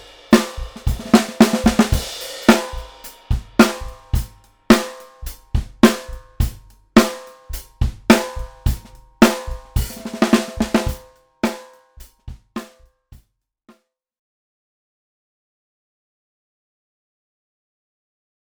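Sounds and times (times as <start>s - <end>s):
vintage mahogany koa med drum: 0.0s - 12.8s.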